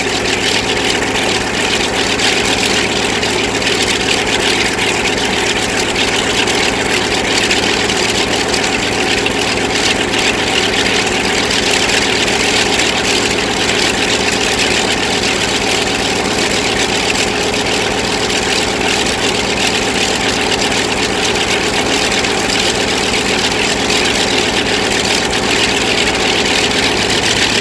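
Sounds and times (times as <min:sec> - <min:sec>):
CA-13 Boomerang aircraft engine idling: 0:00.0 - 0:27.5.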